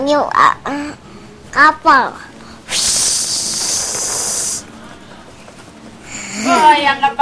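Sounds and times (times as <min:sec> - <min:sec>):
speech: 0:00.1 - 0:01.0, 0:01.6 - 0:02.8, 0:06.4 - 0:07.1
person blowing imitating a strong gust of wind: 0:02.7 - 0:04.7.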